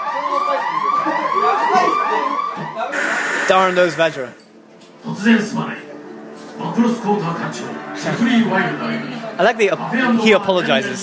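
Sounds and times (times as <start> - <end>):
wailing alarm bells: 0.0 - 4.2
speech: 0.7 - 1.1, 3.5 - 4.4, 5.0 - 5.8, 6.8 - 11.0.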